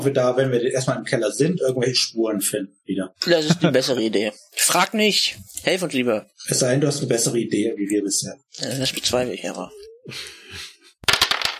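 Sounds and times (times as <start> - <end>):
speech: 0.0 - 10.7
dice rolled across a hard surface: 11.0 - 11.5.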